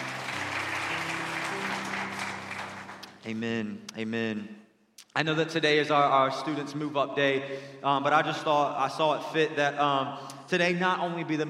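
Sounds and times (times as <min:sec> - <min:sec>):
audience clapping: 0:00.0 - 0:04.0
low sustained organ or keyboard tone: 0:00.0 - 0:04.6
speech: 0:03.2 - 0:04.6, 0:05.2 - 0:11.4.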